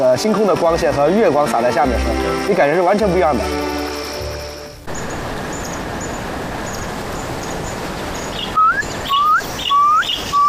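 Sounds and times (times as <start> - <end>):
speech: 0.0 - 3.8
hiss: 0.0 - 10.4
bird calling at night: 8.3 - 10.4.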